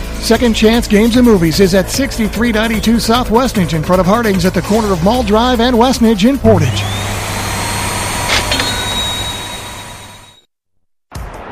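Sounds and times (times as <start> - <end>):
speech: 0.2 - 7.1
jet aircraft engine roaring overhead: 6.4 - 10.4.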